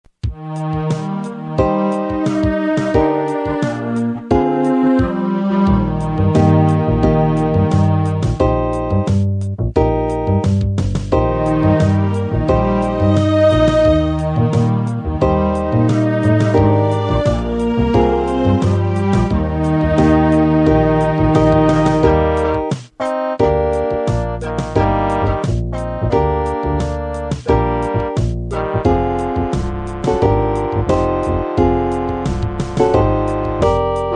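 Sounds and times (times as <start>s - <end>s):
blues music: 0.1s - 34.1s.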